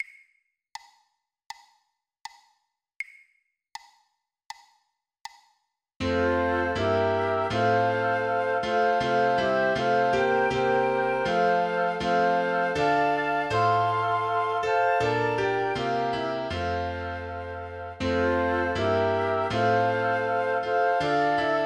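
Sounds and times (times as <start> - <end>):
flute: 6.0 - 21.6
piano: 6.0 - 21.6.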